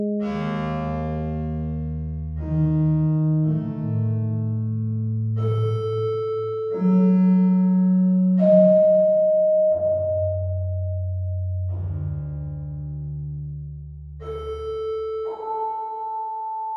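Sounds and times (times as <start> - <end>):
random notes on a mono synth: 0.0 - 16.7.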